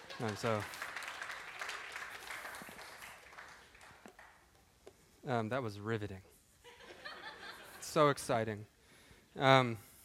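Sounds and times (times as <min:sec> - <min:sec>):
audience applause: 0:00.0 - 0:04.4
speech: 0:00.2 - 0:00.8, 0:05.2 - 0:06.3, 0:07.9 - 0:08.7, 0:09.3 - 0:09.9.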